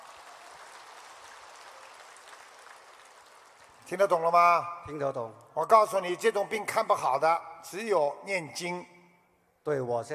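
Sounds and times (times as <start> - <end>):
applause: 0.0 - 4.2
speech: 3.9 - 8.9, 9.6 - 10.1.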